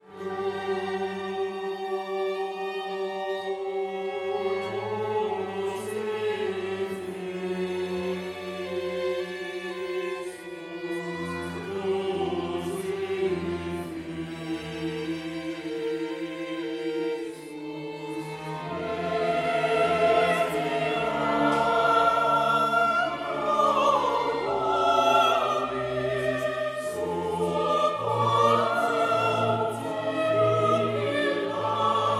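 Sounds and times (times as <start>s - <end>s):
choral mass movement: 0.0s - 32.1s.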